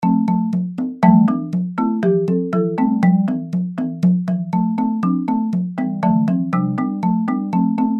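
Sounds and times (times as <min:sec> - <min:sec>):
music: 0:00.0 - 0:07.9.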